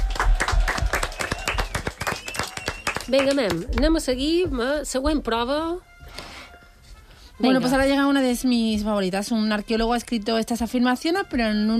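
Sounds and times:
audience clapping during a live quiz-style show: 0:00.0 - 0:04.0
speech: 0:03.1 - 0:05.9, 0:07.4 - 0:11.7.

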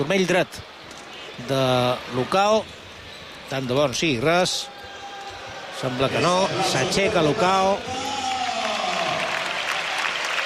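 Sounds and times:
speech: 0:00.0 - 0:00.7, 0:01.4 - 0:02.8, 0:03.5 - 0:04.7, 0:05.8 - 0:08.0
football crowd applauding an injured player: 0:05.7 - 0:10.4.

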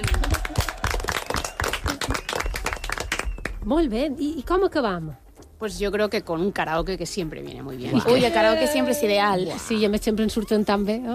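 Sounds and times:
applause: 0:00.0 - 0:03.6
speech: 0:03.6 - 0:11.1.

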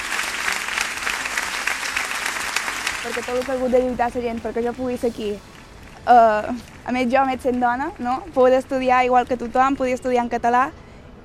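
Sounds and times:
applause: 0:00.0 - 0:08.2
speech: 0:03.0 - 0:10.8.

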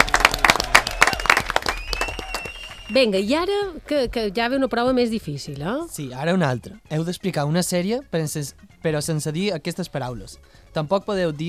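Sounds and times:
small group clapping at a guessing game: 0:00.0 - 0:03.1
speech: 0:02.9 - 0:11.4.

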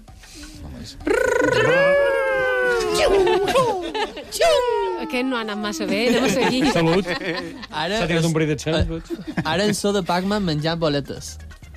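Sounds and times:
speech: 0:00.8 - 0:01.9, 0:03.0 - 0:11.4
voice imitating video game hedgehog running fast: 0:01.0 - 0:03.2
laughter: 0:01.1 - 0:05.1, 0:05.7 - 0:08.3, 0:08.9 - 0:10.0.

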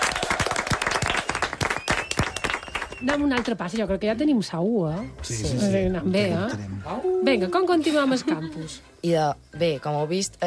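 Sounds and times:
loud applause: 0:00.0 - 0:03.2
speech: 0:03.0 - 0:10.4.

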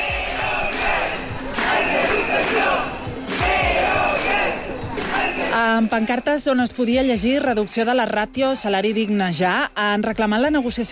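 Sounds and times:
crowd murmur: 0:00.0 - 0:06.0
protesting workers chanting outside parliament: 0:00.0 - 0:06.4
speech: 0:05.6 - 0:10.8.

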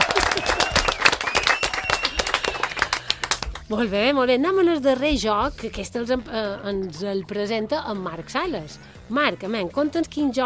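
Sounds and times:
audience applause: 0:00.0 - 0:03.6
thin whistle-like tone: 0:01.2 - 0:02.8
speech: 0:03.7 - 0:10.4.

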